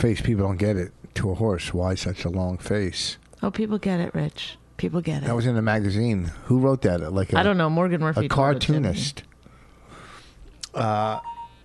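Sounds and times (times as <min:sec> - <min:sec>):
speech: 0:00.0 - 0:09.3, 0:10.8 - 0:11.3
iPhone text message notification tone: 0:11.1 - 0:11.6.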